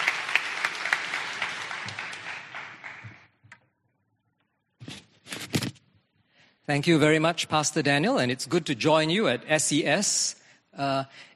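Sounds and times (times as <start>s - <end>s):
church congregation clapping to welcome a guest speaker on Palm Sunday: 0.0s - 3.5s
speech: 6.7s - 11.3s.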